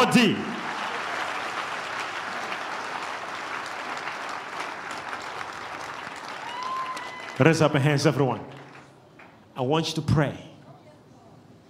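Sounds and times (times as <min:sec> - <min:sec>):
speech: 0:00.0 - 0:00.5, 0:07.4 - 0:08.6, 0:09.6 - 0:10.5
audience clapping: 0:00.0 - 0:09.0.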